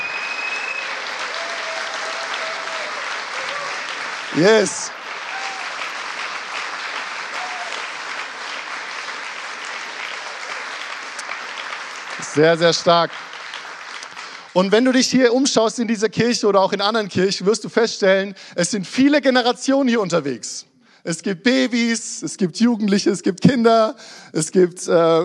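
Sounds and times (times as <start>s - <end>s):
church audience applause: 0.0s - 15.0s
speech: 4.3s - 5.0s, 12.4s - 13.3s, 14.6s - 25.2s.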